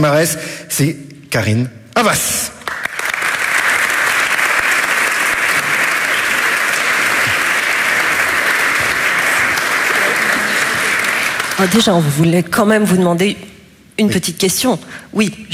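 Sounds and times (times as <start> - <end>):
speech: 0.0 - 2.5, 11.6 - 15.5
audience applauding to welcome a speaker: 2.6 - 12.1.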